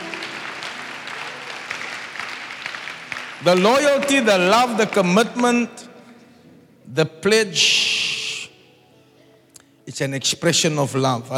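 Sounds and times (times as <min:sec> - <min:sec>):
audience clapping: 0:00.0 - 0:05.8
speech: 0:03.4 - 0:05.9, 0:06.9 - 0:08.1, 0:09.9 - 0:11.3.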